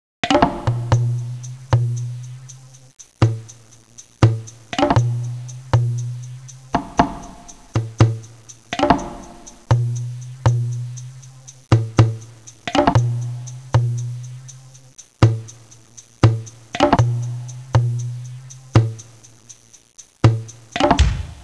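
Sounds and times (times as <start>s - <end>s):
rhythmic ringtone music: 1.2s - 21.4s.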